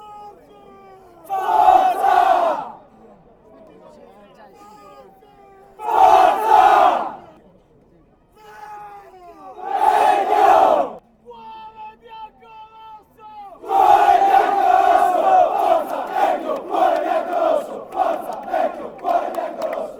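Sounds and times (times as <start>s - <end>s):
fans chanting: 1.2s - 2.8s, 5.8s - 7.4s, 9.6s - 11.0s, 13.6s - 19.9s.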